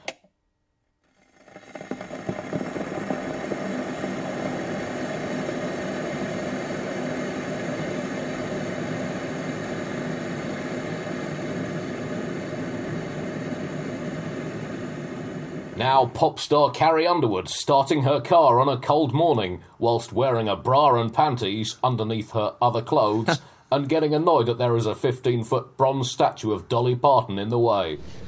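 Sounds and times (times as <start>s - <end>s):
kettle boiling for a cup of tea: 1.0s - 19.6s
speech: 15.8s - 28.2s.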